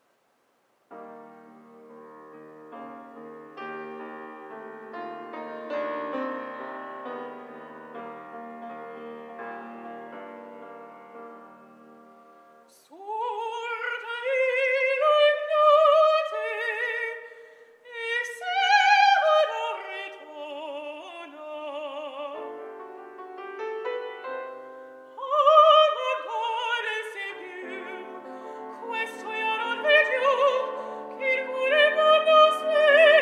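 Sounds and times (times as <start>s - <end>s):
woman singing coloratura opera aria: 12.7s - 22.6s, 25.1s - 33.2s.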